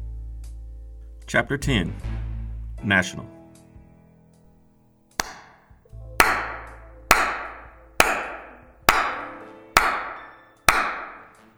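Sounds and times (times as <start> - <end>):
speech: 1.3 - 2.1, 2.8 - 3.4
slow sarcastic hand claps echoing: 5.2 - 5.6, 6.2 - 11.4.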